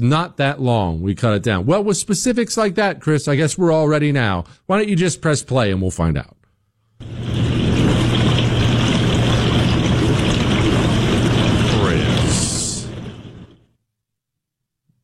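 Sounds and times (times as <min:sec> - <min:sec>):
speech: 0:00.0 - 0:06.4
dishwasher running: 0:07.0 - 0:13.7.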